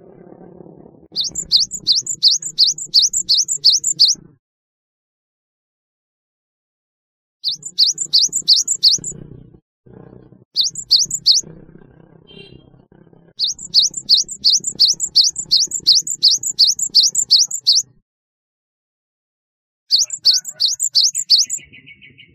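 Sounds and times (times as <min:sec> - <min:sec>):
Java sparrow chirping: 0:01.1 - 0:04.2, 0:07.4 - 0:09.4, 0:10.6 - 0:11.5, 0:13.4 - 0:18.0, 0:19.9 - 0:22.3.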